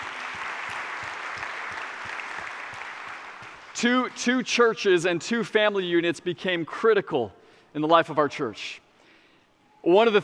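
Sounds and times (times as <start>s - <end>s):
church congregation applause during a five-year anniversary service: 0.0s - 4.2s
speech: 3.8s - 8.8s, 9.8s - 10.2s.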